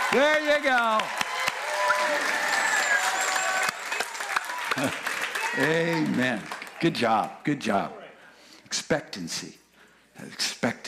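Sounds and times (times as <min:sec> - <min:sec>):
crowd clapping: 0:00.0 - 0:07.4
speech: 0:00.1 - 0:01.2, 0:04.8 - 0:05.0, 0:05.6 - 0:08.0, 0:08.8 - 0:09.6, 0:10.2 - 0:10.8.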